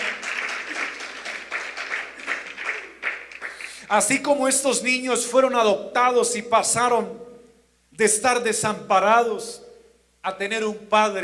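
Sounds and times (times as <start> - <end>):
audience applauding: 0.0 - 3.8
speech: 3.9 - 7.3, 8.0 - 9.6, 10.2 - 11.2.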